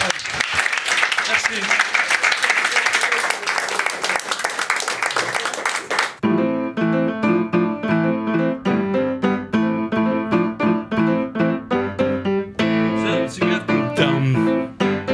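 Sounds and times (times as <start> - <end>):
audience applause: 0.0 - 6.2
tuneful music with clear pitched notes: 6.2 - 15.1.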